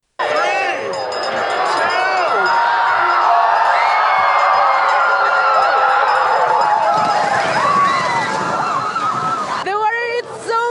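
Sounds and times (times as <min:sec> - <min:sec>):
crowd cheering at New Year's polar bear swim at English Bay: 0:00.2 - 0:09.8
water splashing as people run into the sea: 0:02.4 - 0:10.6.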